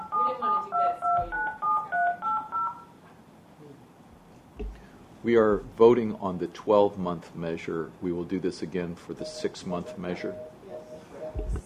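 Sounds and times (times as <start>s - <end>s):
telephone keypad dialing tones when dialing in to a conference line: 0.0s - 2.9s, 9.2s - 11.6s
speech: 5.2s - 10.5s.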